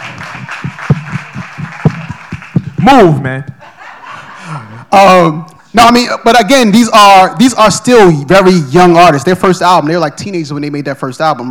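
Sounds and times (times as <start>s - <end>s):
audience clapping: 0.0s - 3.3s
speech: 2.8s - 3.6s, 4.9s - 11.4s
laughter: 3.6s - 4.9s.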